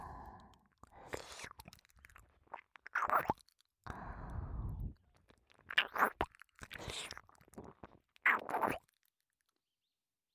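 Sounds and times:
ASMR ear licking at a shrine overnight: 0:00.6 - 0:03.7, 0:05.1 - 0:08.8.

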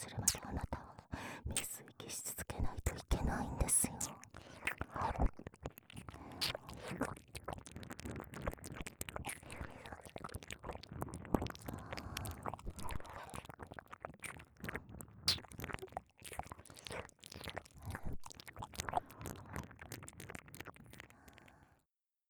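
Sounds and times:
whispering: 0:00.0 - 0:05.2
ear licking sounds: 0:04.3 - 0:21.6.

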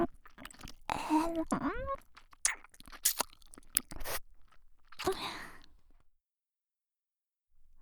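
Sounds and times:
ear licking foreplay: 0:00.1 - 0:05.1.

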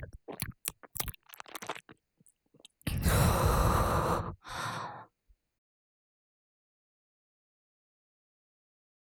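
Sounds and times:
ear licking in the right channel: 0:00.0 - 0:03.4.

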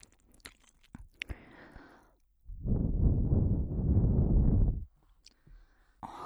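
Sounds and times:
erotic breathing: 0:01.3 - 0:04.9.

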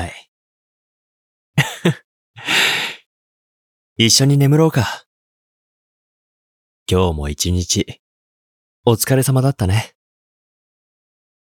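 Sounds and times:
speech: 0:01.8 - 0:02.7, 0:04.0 - 0:05.1, 0:06.9 - 0:08.0, 0:08.8 - 0:10.0
person yawning: 0:02.4 - 0:03.0.

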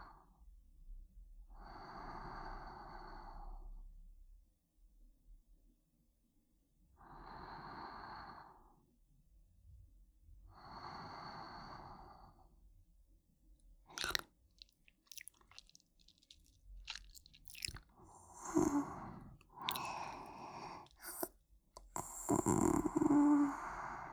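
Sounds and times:
sleeping breathing: 0:15.1 - 0:24.1.

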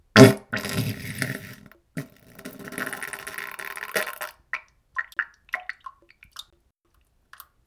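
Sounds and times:
diarrhea farting: 0:00.2 - 0:04.4.

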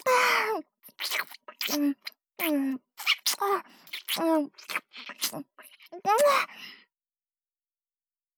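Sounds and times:
looping ear licking: 0:00.9 - 0:06.4.

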